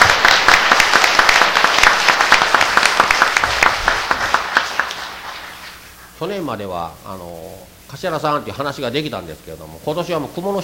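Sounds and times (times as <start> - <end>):
audience applause: 0.0 - 5.9
speech: 6.2 - 10.6.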